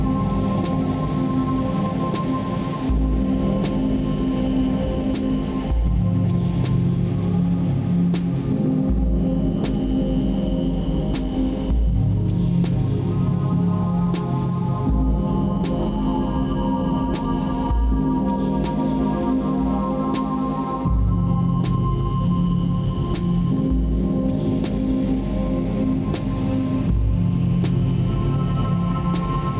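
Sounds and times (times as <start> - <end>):
deep music: 0.0 - 29.5.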